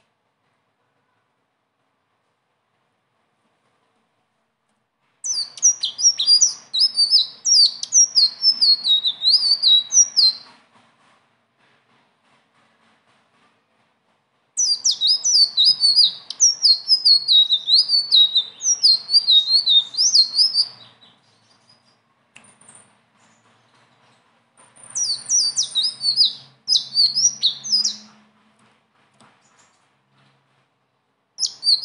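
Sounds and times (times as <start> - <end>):
leafbird song: 5.2 - 10.5, 14.6 - 23.8, 24.8 - 28.2, 31.4 - 31.8.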